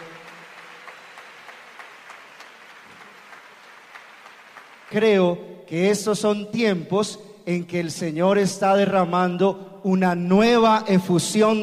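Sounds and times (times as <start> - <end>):
audience applause: 0.0 - 5.2
speech: 4.9 - 11.6.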